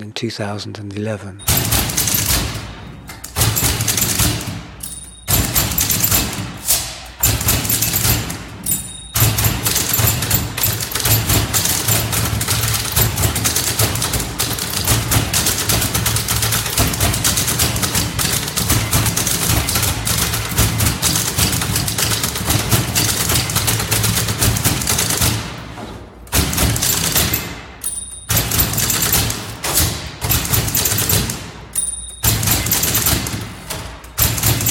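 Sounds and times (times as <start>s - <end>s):
speech: 0.0s - 1.7s
amplified typewriters and prepared typewriters played by six typists: 1.4s - 34.6s.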